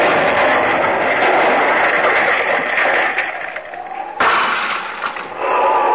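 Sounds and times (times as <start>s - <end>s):
cottage window breaking: 0.0s - 5.4s
mine explosion: 0.0s - 5.8s.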